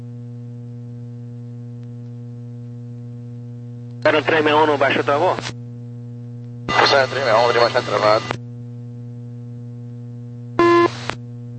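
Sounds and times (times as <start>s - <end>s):
constant low radio hum: 0.0s - 11.5s
speech: 4.0s - 5.6s, 6.9s - 8.4s
radio electronic beep: 10.6s - 11.0s.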